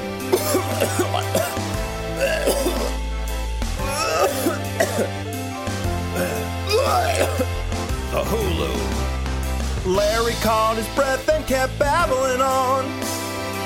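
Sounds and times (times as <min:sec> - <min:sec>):
steady musical backing: 0:00.0 - 0:13.6
person imitating a violent strangled cough: 0:00.3 - 0:01.6, 0:02.2 - 0:03.0, 0:03.9 - 0:05.2, 0:06.2 - 0:07.5
speech: 0:09.8 - 0:13.1.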